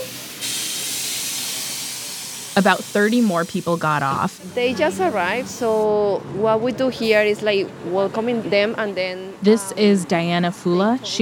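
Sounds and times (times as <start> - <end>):
bus air brakes hissing: 0.0 - 3.8
bus arriving: 0.0 - 11.2
speech: 2.6 - 11.2.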